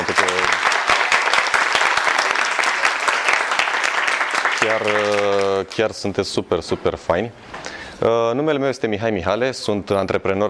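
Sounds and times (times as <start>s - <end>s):
audience applause: 0.0s - 5.7s
speech: 4.7s - 10.4s.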